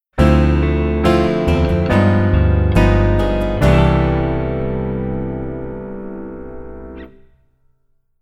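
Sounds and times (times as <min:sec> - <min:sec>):
keyboard rootless chord voicings: 0:00.2 - 0:07.4.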